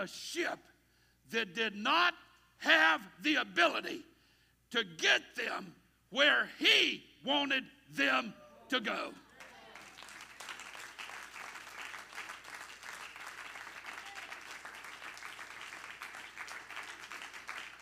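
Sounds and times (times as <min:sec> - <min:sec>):
speech: 0:00.0 - 0:04.1, 0:04.7 - 0:09.2
audience clapping hands: 0:09.4 - 0:17.8.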